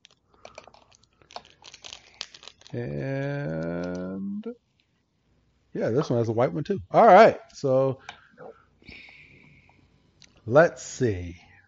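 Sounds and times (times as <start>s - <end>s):
trading card celebration pack wrappers ripping: 0.0s - 4.1s
speech: 2.7s - 3.8s, 5.8s - 8.2s, 10.5s - 11.4s.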